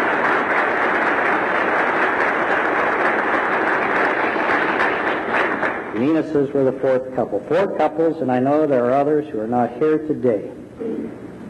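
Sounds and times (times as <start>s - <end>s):
audience applause: 0.0s - 6.0s
speech: 6.0s - 10.9s.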